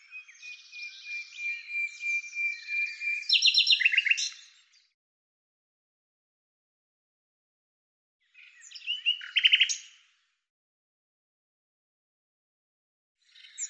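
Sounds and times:
bird song with scratchy notes and a run of high sharp notes: 0.0 - 5.0, 8.2 - 10.4, 13.2 - 13.6.

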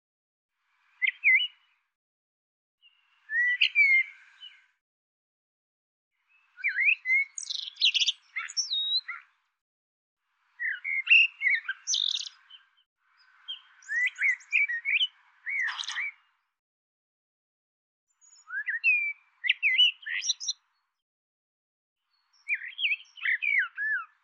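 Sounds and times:
bird whistles and chirps: 1.0 - 1.6, 3.2 - 4.7, 6.4 - 9.3, 10.6 - 12.8, 13.5 - 16.2, 18.2 - 20.6, 22.4 - 24.2.

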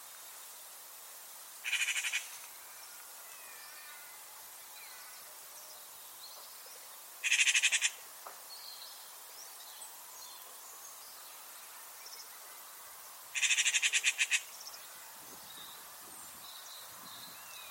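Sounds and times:
bird calls in bright buzzy pulses: 1.6 - 2.3, 7.2 - 8.0, 13.3 - 14.5.

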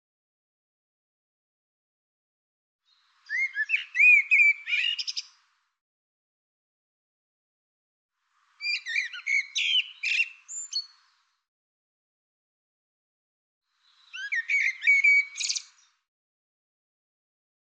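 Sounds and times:
bird singing bright phrases of varied whistles and chirps: 2.9 - 5.3, 8.6 - 11.0, 13.8 - 16.0.

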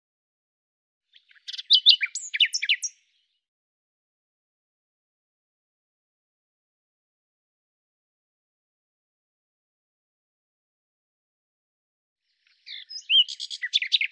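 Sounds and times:
bird song: 1.0 - 3.5, 12.2 - 14.1.

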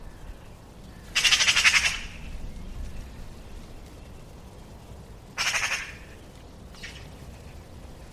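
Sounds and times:
quiet low background hiss: 0.0 - 8.1
bird chattering call: 1.2 - 2.2, 5.4 - 6.1.

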